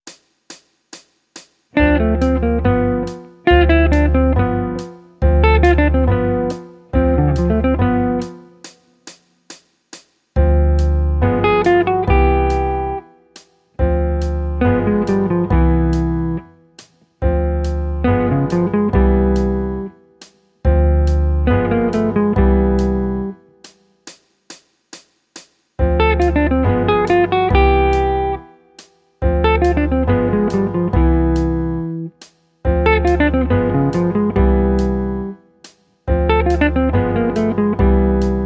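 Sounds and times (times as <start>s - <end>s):
jazz guitar: 1.8s - 8.8s, 10.4s - 13.1s, 13.8s - 16.6s, 17.2s - 20.0s, 20.7s - 23.5s, 25.8s - 28.6s, 29.2s - 35.4s, 36.1s - 38.4s.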